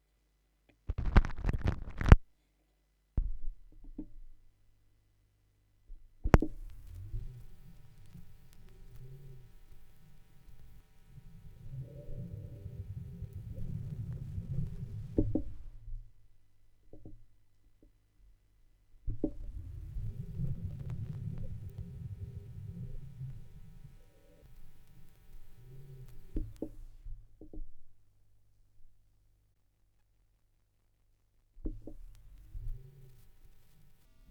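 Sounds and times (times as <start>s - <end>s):
vinyl record noise: 0.9s - 2.3s, 6.3s - 15.8s, 19.1s - 27.0s, 31.7s - 34.2s.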